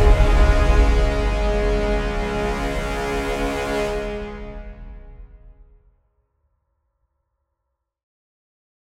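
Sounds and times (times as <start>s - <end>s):
orchestral cutscene music: 0.0s - 5.6s.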